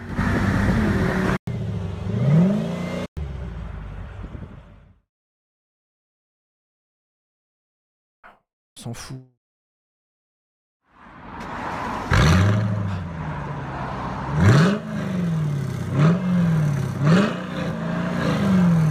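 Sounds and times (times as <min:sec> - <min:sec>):
car engine revving through exhaust: 0:00.0 - 0:03.5, 0:11.4 - 0:18.8
speech: 0:08.8 - 0:09.4.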